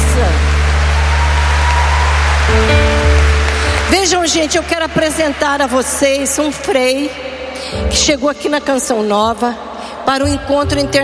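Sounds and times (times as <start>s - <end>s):
audience applause: 0.0s - 6.7s
speech: 4.2s - 11.0s.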